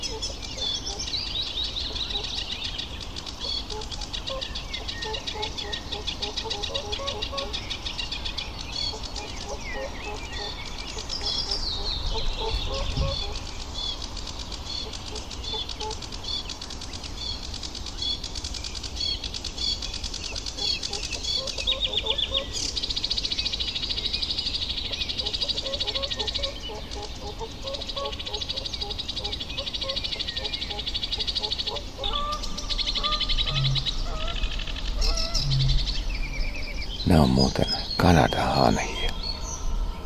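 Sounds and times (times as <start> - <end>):
dawn chorus birdsong at Sylvöjärvi after sunrise: 0.0 - 40.0
low rumble: 33.3 - 37.0.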